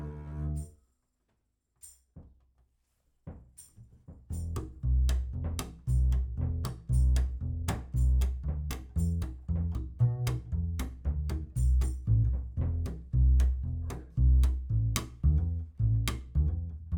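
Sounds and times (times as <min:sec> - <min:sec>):
bass through microphone: 0:00.0 - 0:00.7, 0:04.3 - 0:16.9.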